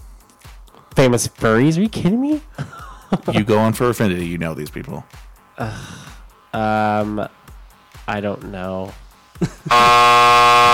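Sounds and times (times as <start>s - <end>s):
speech: 1.0s - 7.4s, 8.1s - 10.7s
laughter: 2.5s - 3.8s, 9.4s - 10.0s
loud electronic buzzer: 9.7s - 10.7s.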